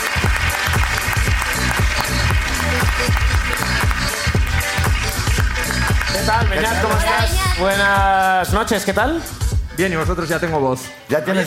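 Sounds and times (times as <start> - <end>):
audience applause: 0.0 - 7.5
speech: 6.6 - 11.4.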